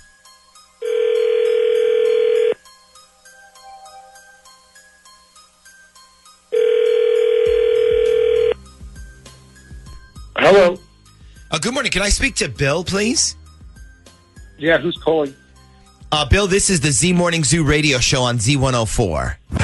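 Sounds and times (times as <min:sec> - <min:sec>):
telephone ringing tones: 0:00.8 - 0:02.6, 0:06.5 - 0:08.6
speech: 0:11.5 - 0:13.4, 0:14.6 - 0:15.4, 0:16.1 - 0:19.4.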